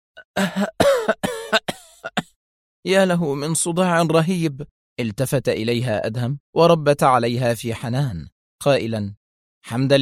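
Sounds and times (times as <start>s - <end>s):
woman coughing as she regains consciousness: 0.2s - 2.4s
speech: 0.4s - 0.9s, 2.8s - 10.0s.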